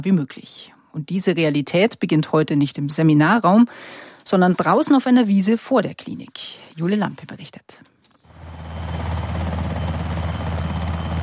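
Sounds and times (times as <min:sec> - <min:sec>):
speech: 0:00.0 - 0:07.9
helicopter landing: 0:08.3 - 0:11.2.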